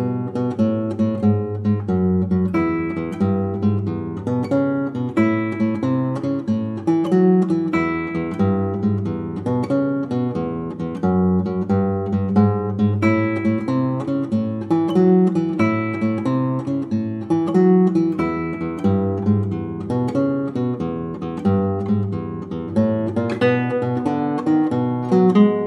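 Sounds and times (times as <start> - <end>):
blues backing guitar: 0.0 - 25.6.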